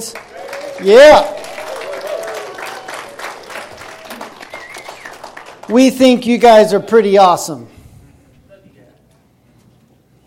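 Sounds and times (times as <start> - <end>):
speech: 0.0 - 1.4, 5.7 - 7.8
audience applause: 0.0 - 6.0.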